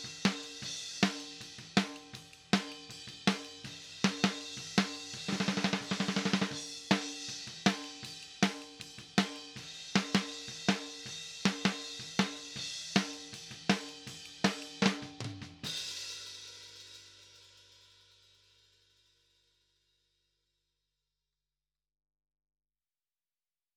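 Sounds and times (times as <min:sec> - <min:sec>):
snare drum: 0:00.0 - 0:15.9.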